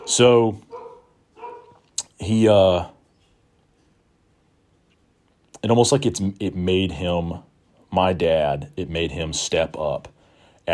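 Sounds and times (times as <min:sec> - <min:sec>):
dog barking: 0:00.0 - 0:01.9
speech: 0:00.1 - 0:00.7, 0:02.2 - 0:03.0, 0:05.6 - 0:10.7.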